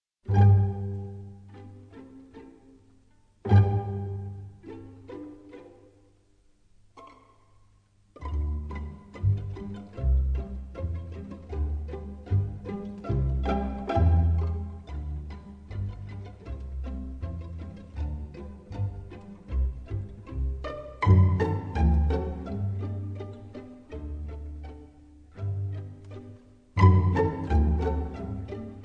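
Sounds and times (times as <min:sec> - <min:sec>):
pizzicato polka: 0:00.2 - 0:28.8.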